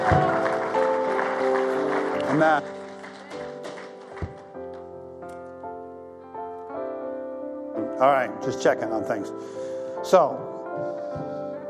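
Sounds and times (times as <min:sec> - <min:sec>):
audience clapping: 0:00.0 - 0:05.0
speech: 0:02.3 - 0:02.8, 0:08.0 - 0:11.6.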